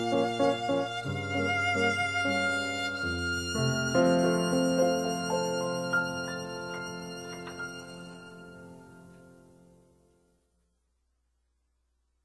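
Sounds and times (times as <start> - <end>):
violins: 0.0 - 9.5.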